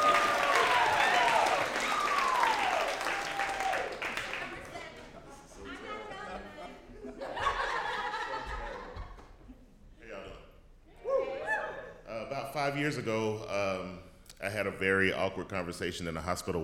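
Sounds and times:
high whoops: 0:00.0 - 0:04.0, 0:11.0 - 0:11.9
sustained audience applause: 0:00.0 - 0:05.1
laughter: 0:07.0 - 0:09.6
speech: 0:12.7 - 0:16.6.

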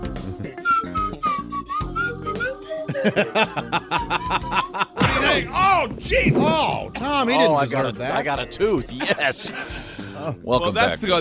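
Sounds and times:
busy rhythmic backing track: 0:00.0 - 0:11.1
slide whistle melody: 0:00.6 - 0:03.1, 0:03.9 - 0:05.0
laughter: 0:02.7 - 0:05.7, 0:08.8 - 0:09.9
speech: 0:03.0 - 0:03.7, 0:05.4 - 0:11.1.

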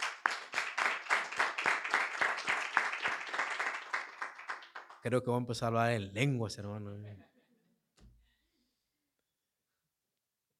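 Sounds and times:
audience clapping hands: 0:00.0 - 0:05.2
speech: 0:05.0 - 0:07.3.

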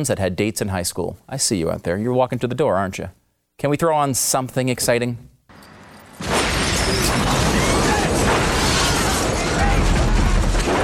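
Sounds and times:
speech: 0:00.0 - 0:05.3
crackling debris: 0:06.0 - 0:10.8
bus exploding in film scene: 0:06.2 - 0:10.8.

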